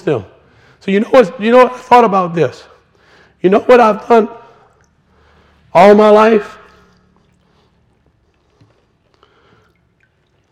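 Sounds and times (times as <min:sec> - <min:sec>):
speech: 0:00.0 - 0:02.7, 0:03.4 - 0:04.4, 0:05.7 - 0:06.6
little water drips: 0:02.8 - 0:10.5.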